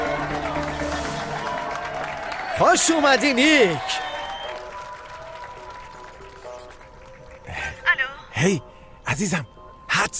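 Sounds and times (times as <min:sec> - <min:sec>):
audience applause: 0:00.0 - 0:07.4
speech: 0:02.6 - 0:04.1, 0:08.4 - 0:10.1.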